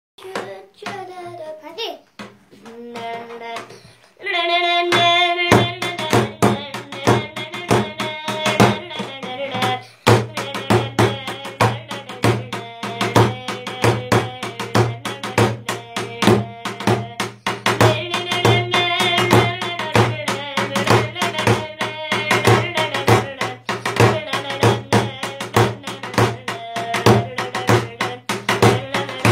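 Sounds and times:
musician children playing davul drum: 0.2s - 1.4s, 4.8s - 29.3s.

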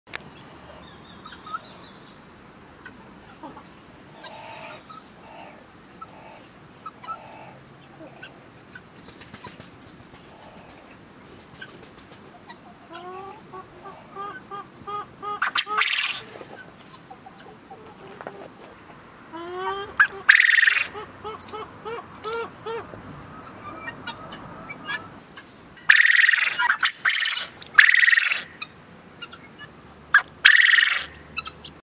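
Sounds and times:
male quail calling: 2.8s - 8.9s, 11.6s - 31.8s.

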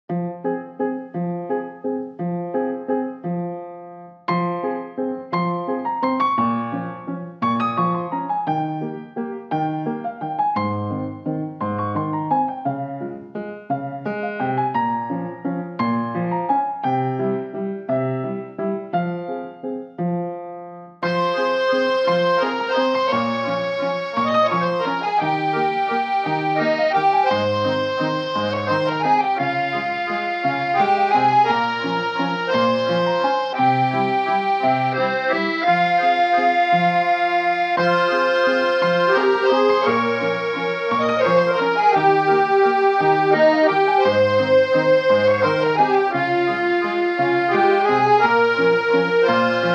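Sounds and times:
piano: 0.0s - 49.7s.

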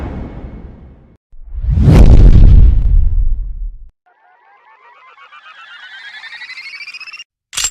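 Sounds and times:
bass sound effect: 1.4s - 3.9s.

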